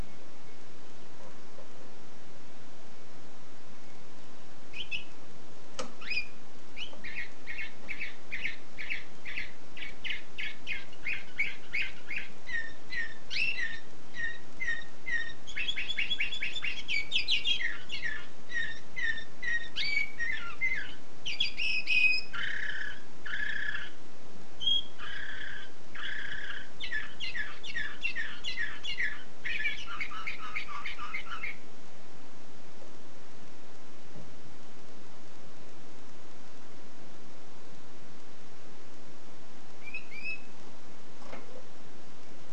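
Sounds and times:
steady background hiss: 0:00.0 - 0:42.5
canary singing: 0:04.7 - 0:05.2, 0:05.8 - 0:24.0, 0:24.6 - 0:31.7, 0:39.8 - 0:40.6.

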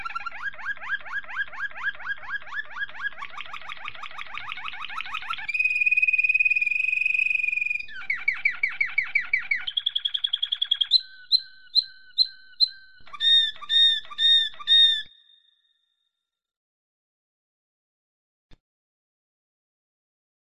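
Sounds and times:
domestic canary song: 0:00.0 - 0:15.5.

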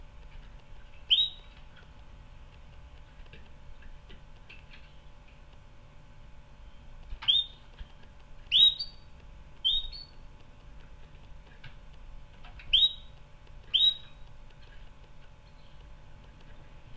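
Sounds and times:
canary upswept whistled calls: 0:01.1 - 0:01.5, 0:07.2 - 0:07.6, 0:08.5 - 0:09.0, 0:09.6 - 0:10.2, 0:12.7 - 0:13.1, 0:13.7 - 0:14.2.

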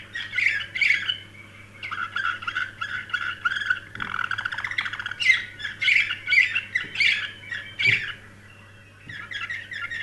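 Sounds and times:
canary singing trills: 0:00.0 - 0:10.0.

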